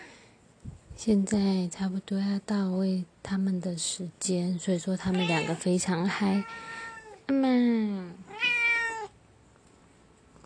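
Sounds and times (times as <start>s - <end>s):
speech: 1.0s - 8.4s
two cats meowing: 5.1s - 5.6s, 6.4s - 7.2s, 8.3s - 9.1s.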